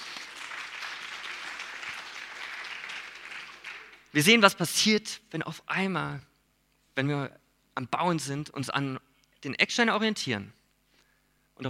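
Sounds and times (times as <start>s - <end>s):
audience applause: 0.0s - 4.1s
speech: 4.1s - 6.3s, 7.0s - 10.6s.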